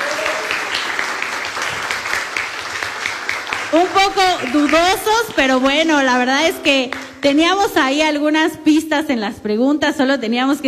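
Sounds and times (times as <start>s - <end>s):
audience applause: 0.0s - 5.8s
speech: 3.7s - 10.6s.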